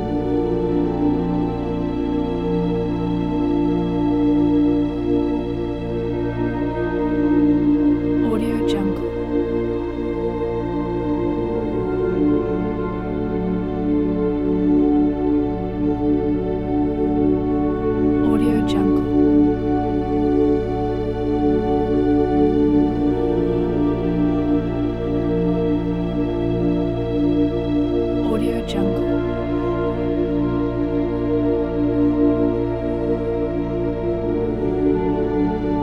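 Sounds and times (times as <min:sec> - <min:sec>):
mysterious cinematic ambience: 0:00.0 - 0:35.8.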